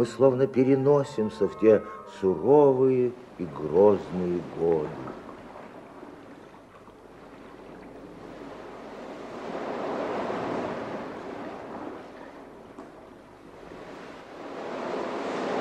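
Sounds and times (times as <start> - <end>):
speech: 0.0 - 5.2
surf of the Adriatic Sea rumbling along the coast at Trieste: 0.0 - 15.5.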